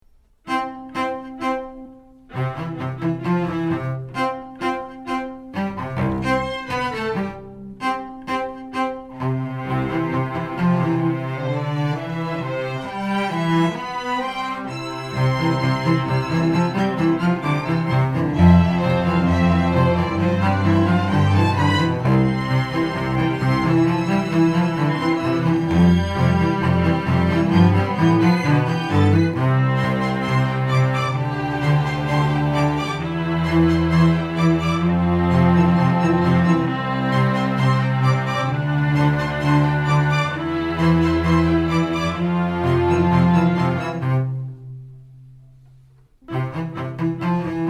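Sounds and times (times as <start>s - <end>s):
strings: 0.3s - 47.6s.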